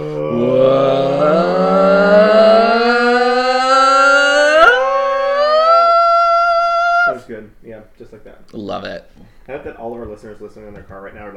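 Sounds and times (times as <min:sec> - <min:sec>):
person imitating a cinema intro drone: 0:00.0 - 0:07.2
speech: 0:10.1 - 0:11.3.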